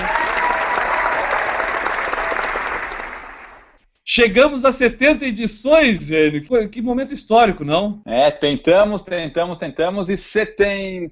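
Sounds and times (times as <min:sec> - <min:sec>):
audience applause: 0:00.0 - 0:03.8
speech: 0:04.2 - 0:11.1.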